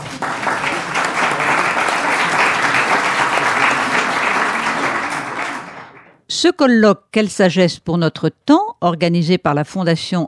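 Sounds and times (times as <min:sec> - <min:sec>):
audience applause: 0:00.0 - 0:06.2
speech: 0:06.4 - 0:10.2.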